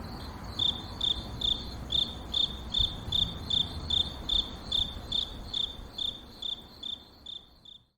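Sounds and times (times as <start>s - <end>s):
crickets chirping: 0.0s - 7.9s.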